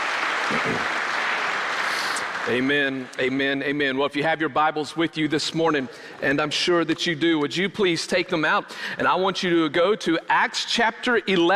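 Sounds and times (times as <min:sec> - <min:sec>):
audience hand clap: 0:00.0 - 0:03.4
speech: 0:02.4 - 0:11.5.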